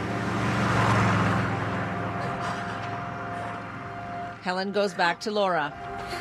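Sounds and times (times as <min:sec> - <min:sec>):
car driving past on a road: 0:00.0 - 0:04.5
speech: 0:04.4 - 0:06.1.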